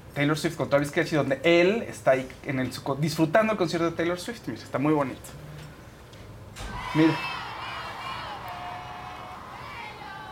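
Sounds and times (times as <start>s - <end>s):
speech: 0.2s - 5.5s, 6.9s - 7.3s
concert crowd chanting and shouting: 6.6s - 10.2s.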